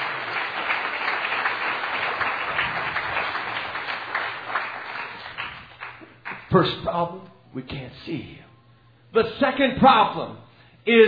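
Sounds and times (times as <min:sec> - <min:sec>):
audience clapping hands: 0:00.0 - 0:06.6
speech: 0:06.5 - 0:08.5, 0:09.1 - 0:11.0.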